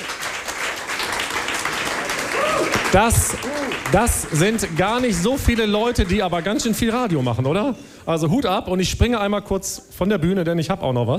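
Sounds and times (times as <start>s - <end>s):
audience applause: 0.0s - 7.8s
speech: 2.9s - 11.1s.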